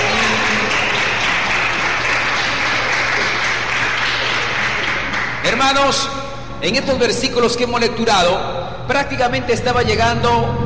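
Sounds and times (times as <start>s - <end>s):
audience applause: 0.0s - 5.6s
speech: 5.6s - 10.6s.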